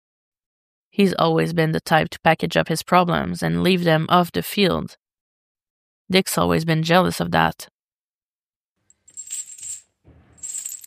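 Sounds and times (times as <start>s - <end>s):
speech: 0.9s - 5.0s, 6.1s - 7.7s
chains rattling and clicking: 8.9s - 10.8s.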